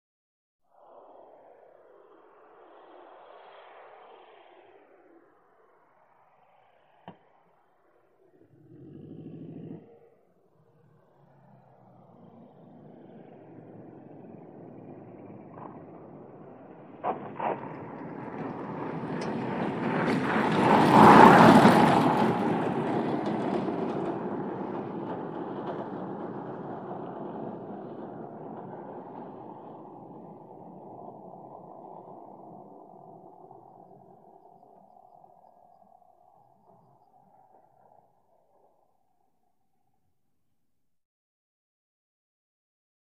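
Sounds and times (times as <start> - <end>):
vehicle engine throttle: 8.2 - 34.9
engine grinding to a stop: 10.8 - 38.0
wheels grinding and impacting as they touch down: 14.1 - 33.8.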